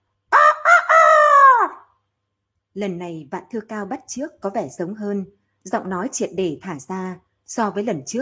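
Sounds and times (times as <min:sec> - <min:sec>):
rooster crowing: 0:00.3 - 0:01.8
speech: 0:02.8 - 0:08.1.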